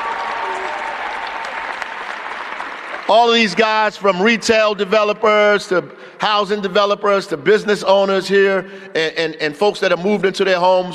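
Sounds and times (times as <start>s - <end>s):
round of applause: 0.0s - 4.0s
speech: 3.1s - 10.9s.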